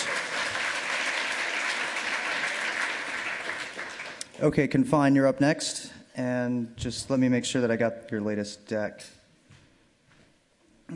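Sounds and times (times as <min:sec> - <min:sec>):
round of applause: 0:00.0 - 0:04.3
speech: 0:04.4 - 0:09.2.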